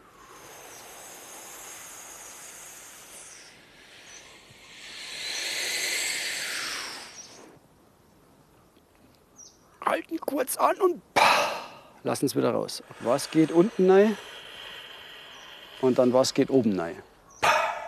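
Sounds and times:
deep breathing into belly then chest: 0.0 - 7.6, 11.4 - 17.2
speech: 10.1 - 11.1, 12.0 - 14.3, 15.8 - 17.1.

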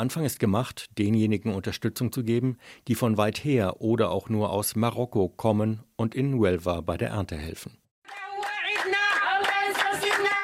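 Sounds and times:
speech: 0.0 - 8.2
people clapping in arriving buses: 8.0 - 10.4
people singing in arriving buses: 8.1 - 10.4.

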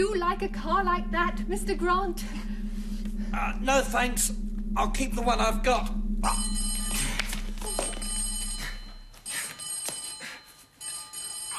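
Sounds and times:
speech: 0.0 - 2.6, 3.3 - 7.1
old-style telephone bell ringing: 7.6 - 11.5.

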